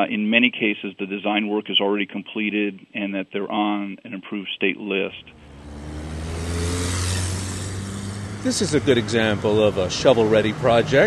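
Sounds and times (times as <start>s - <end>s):
speech: 0.0s - 5.5s, 8.4s - 11.0s
traffic rumbling at the intersection of Gallows Road and Lee Highway, Northern Virginia: 5.0s - 11.0s.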